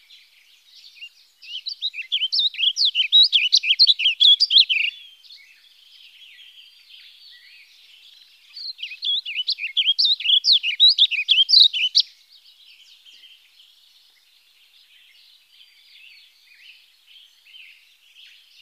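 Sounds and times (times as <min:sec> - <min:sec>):
warbling vireo calls: 0:01.0 - 0:05.0, 0:08.5 - 0:12.1.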